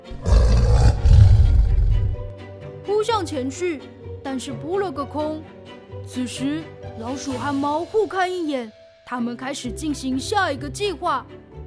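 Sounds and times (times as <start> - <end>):
angry roar: 0.0 - 2.3
speech: 3.1 - 11.4.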